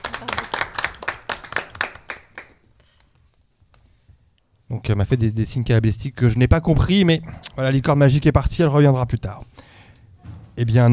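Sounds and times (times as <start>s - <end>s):
audience clapping for a six-year-old girl: 0.0s - 3.2s
speech: 4.8s - 9.7s, 10.6s - 10.9s.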